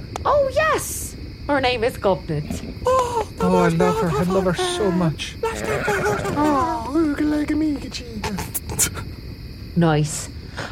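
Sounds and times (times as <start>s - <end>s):
speech: 0.5s - 9.0s, 9.8s - 10.7s
laughter: 2.9s - 7.0s
person imitating a horse whinny: 4.5s - 6.9s.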